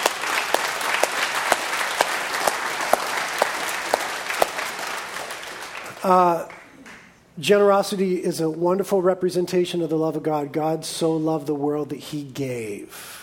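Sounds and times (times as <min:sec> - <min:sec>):
audience applause: 0:00.0 - 0:06.7
speech: 0:06.0 - 0:06.6, 0:07.4 - 0:13.2.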